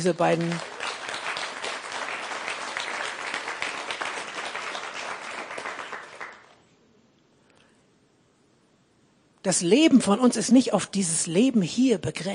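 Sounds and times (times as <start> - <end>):
speech: 0.0 - 0.7, 9.4 - 12.3
audience applause: 0.0 - 6.6.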